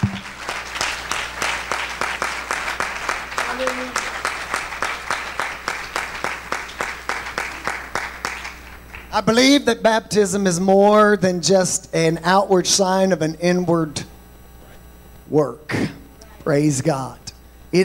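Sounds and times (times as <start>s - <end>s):
rhythmic audience clapping: 0.0s - 9.4s
speech: 9.2s - 14.1s, 15.3s - 15.9s, 16.5s - 17.8s.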